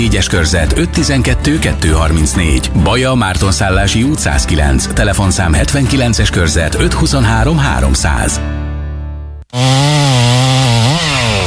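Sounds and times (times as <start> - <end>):
speech: 0.0 - 8.6, 9.5 - 10.0
pine tree being cut down: 9.5 - 11.4.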